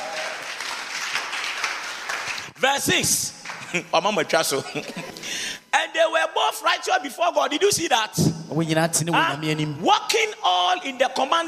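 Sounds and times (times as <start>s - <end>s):
audience clapping in the church: 0.0s - 4.2s
speech: 2.6s - 5.6s, 6.2s - 11.4s
laughter: 3.6s - 5.4s.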